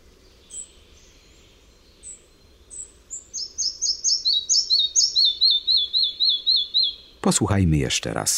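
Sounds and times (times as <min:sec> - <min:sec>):
bird song with leaping whistles: 0:02.0 - 0:07.1
speech: 0:07.3 - 0:08.3.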